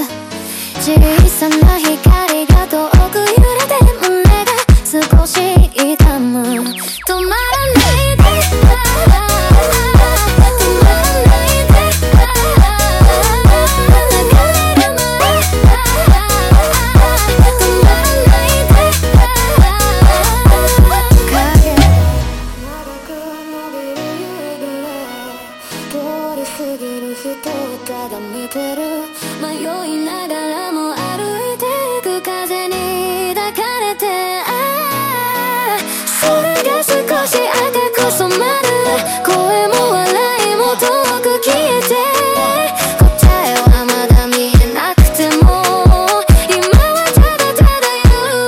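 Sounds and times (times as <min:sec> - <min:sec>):
sped up montagem music: 0:00.5 - 0:25.2, 0:36.1 - 0:48.3.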